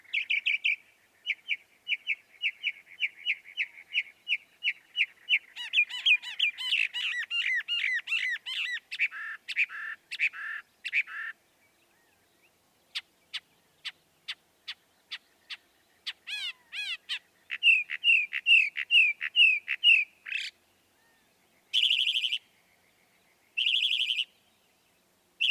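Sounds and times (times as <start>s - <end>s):
northern mockingbird song: 0.0s - 25.4s.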